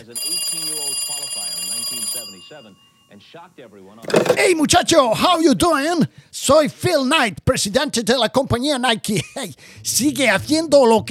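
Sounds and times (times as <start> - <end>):
telephone ringing: 0.0 - 3.3, 4.0 - 4.6
speech: 0.0 - 11.0.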